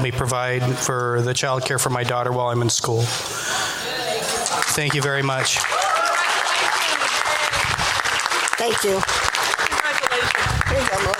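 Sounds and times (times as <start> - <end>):
speech: 0.0 - 3.7, 4.8 - 5.9, 8.6 - 9.3
audience applause: 4.3 - 11.1.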